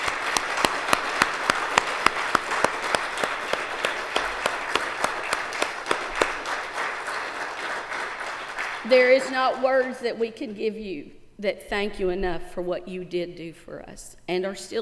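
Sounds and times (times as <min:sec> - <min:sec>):
round of applause for veterans: 0:00.0 - 0:10.0
speech: 0:08.9 - 0:14.7.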